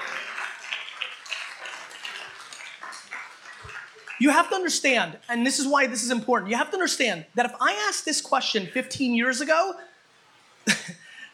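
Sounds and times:
audience clapping: 0:00.0 - 0:05.7
speech: 0:04.2 - 0:09.9.

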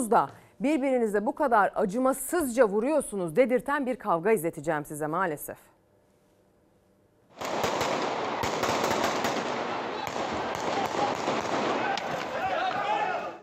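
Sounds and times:
speech: 0:00.0 - 0:05.7
police gunshots fired in succession: 0:07.4 - 0:12.9
crowd shouting: 0:09.7 - 0:13.4.

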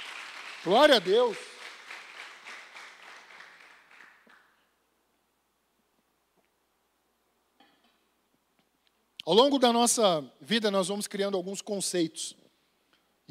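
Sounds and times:
audience applause: 0:00.0 - 0:04.6
speech: 0:00.6 - 0:01.5, 0:09.3 - 0:12.4.

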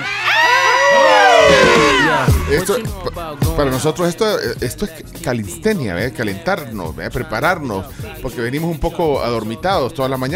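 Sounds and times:
crowd shouting and cheering: 0:00.0 - 0:03.8
speech: 0:02.6 - 0:10.3.

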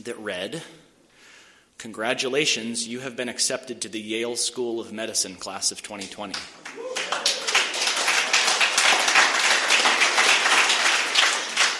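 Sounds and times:
speech: 0:00.0 - 0:00.8, 0:01.8 - 0:07.2
audience applause: 0:06.6 - 0:11.7.

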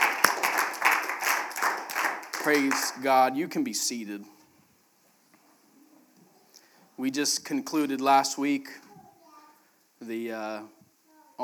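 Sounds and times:
hand clapping: 0:00.0 - 0:03.2
speech: 0:02.4 - 0:04.4, 0:07.0 - 0:08.8, 0:10.0 - 0:10.8.

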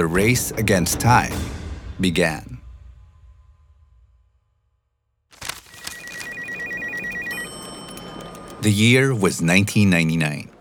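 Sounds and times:
speech: 0:00.0 - 0:02.5, 0:08.6 - 0:10.5
telephone ringing with a high-pitched warbling trill: 0:05.5 - 0:10.5.

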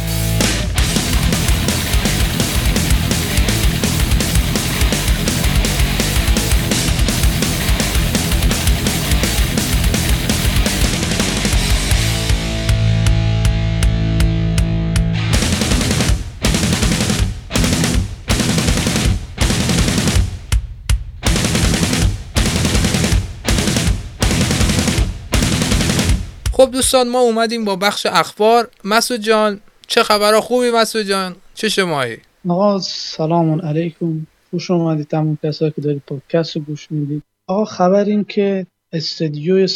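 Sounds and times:
heavy metal music track: 0:00.0 - 0:20.6, 0:21.2 - 0:27.3
speech: 0:26.9 - 0:39.7.

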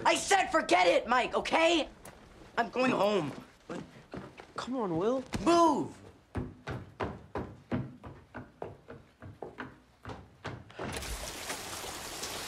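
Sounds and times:
speech: 0:00.1 - 0:02.0, 0:02.6 - 0:03.9, 0:04.6 - 0:06.0
rain falling: 0:11.0 - 0:12.4.

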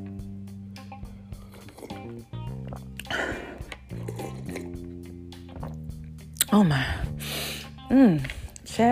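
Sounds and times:
person sipping tea: 0:01.2 - 0:06.5
speech: 0:06.5 - 0:07.0, 0:07.9 - 0:08.9.

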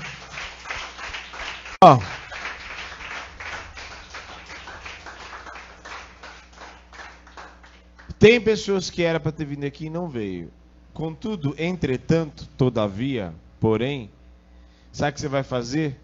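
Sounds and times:
applause: 0:00.0 - 0:08.2
speech: 0:01.8 - 0:02.1, 0:08.2 - 0:14.2, 0:14.9 - 0:16.0.

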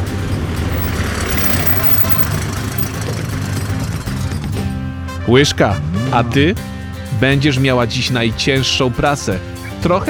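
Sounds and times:
truck diesel engine idling: 0:00.0 - 0:04.8
speech: 0:05.3 - 0:10.0.

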